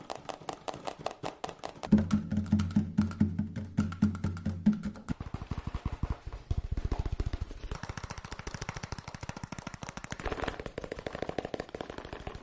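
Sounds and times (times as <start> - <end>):
fast tapping in rapid sharp clicks: 0.0 - 12.4
low steady hum with a thudding beat: 1.9 - 5.2.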